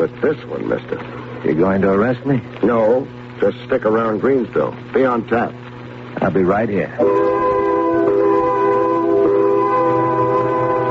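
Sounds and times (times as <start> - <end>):
speech: 0.0 - 7.6
loud factory quitting-time whistle: 7.0 - 10.8.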